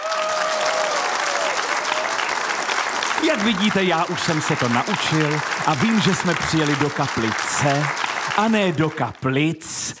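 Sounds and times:
live audience applause: 0:00.0 - 0:09.2
speech: 0:03.2 - 0:09.9.

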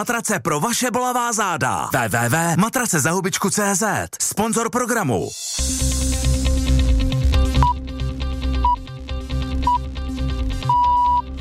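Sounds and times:
speech: 0:00.0 - 0:06.0
continuous bed of music: 0:04.8 - 0:11.4
Czech Radio Brno radio time signal pips: 0:07.6 - 0:07.8, 0:10.6 - 0:11.3.

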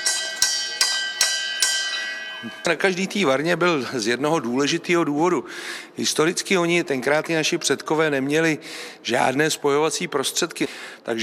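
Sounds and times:
brewhouse bell ringing: 0:00.0 - 0:03.2
speech: 0:02.4 - 0:11.2.

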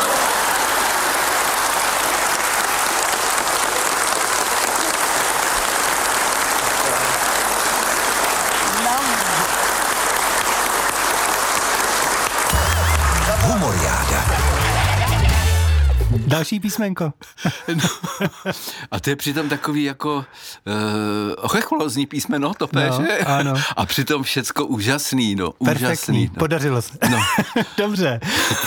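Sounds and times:
laughter: 0:00.0 - 0:01.3, 0:06.6 - 0:09.8, 0:12.4 - 0:16.3, 0:17.3 - 0:19.8, 0:22.8 - 0:23.6, 0:27.0 - 0:28.6
audience applause: 0:00.0 - 0:16.2
speech: 0:16.4 - 0:28.6.

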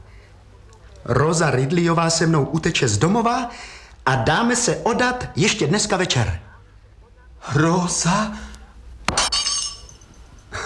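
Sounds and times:
speech: 0:01.0 - 0:06.5, 0:07.4 - 0:08.5
glass breaking into shards: 0:09.1 - 0:10.2.

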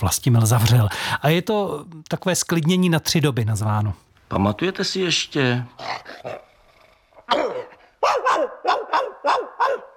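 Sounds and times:
speech: 0:00.0 - 0:06.5, 0:07.3 - 0:09.9
dog barking at apartment door: 0:07.3 - 0:09.9.

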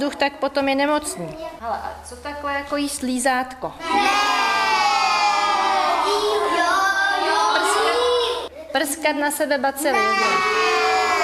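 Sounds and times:
speech: 0:00.0 - 0:04.4, 0:08.7 - 0:10.6
children shouting over each other in classroom: 0:03.8 - 0:08.5, 0:09.9 - 0:11.2.

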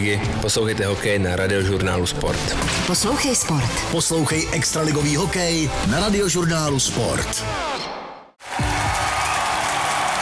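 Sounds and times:
speech: 0:00.0 - 0:07.9
crowd applauding: 0:08.4 - 0:10.2.

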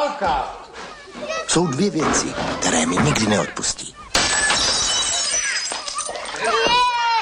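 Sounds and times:
speech: 0:00.0 - 0:00.6, 0:01.2 - 0:04.0
plates shattering: 0:04.1 - 0:07.0.

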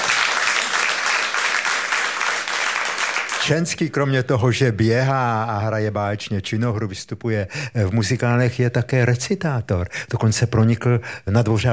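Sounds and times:
audience applause: 0:00.0 - 0:03.6
speech: 0:03.4 - 0:11.7.

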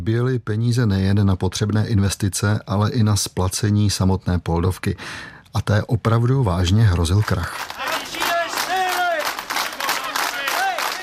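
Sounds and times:
speech: 0:00.0 - 0:07.9
protesting workers chanting: 0:07.8 - 0:11.0.

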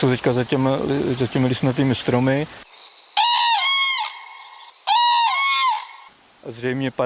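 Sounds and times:
speech: 0:00.0 - 0:02.7, 0:06.4 - 0:07.0
two cranes calling in flight: 0:02.7 - 0:06.1.

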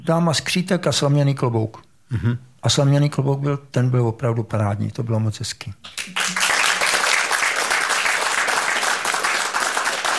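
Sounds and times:
speech: 0:00.0 - 0:06.2
audience applause: 0:06.0 - 0:10.1.

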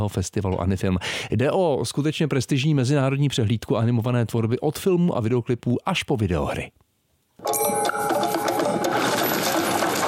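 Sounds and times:
speech: 0:00.0 - 0:06.8
clattering, mechanical-sounding percussion in a festival jingle: 0:07.4 - 0:10.0
ringing metallic tones: 0:07.4 - 0:10.0.

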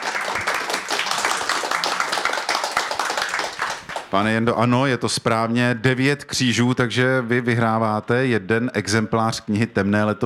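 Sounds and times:
audience clapping: 0:00.0 - 0:04.2
speech: 0:04.1 - 0:10.2.

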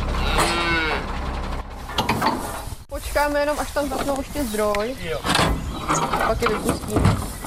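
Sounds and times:
hardy Scottish cattle lowing on pasture at a former shooting range: 0:00.1 - 0:01.2
speech: 0:03.2 - 0:07.3.

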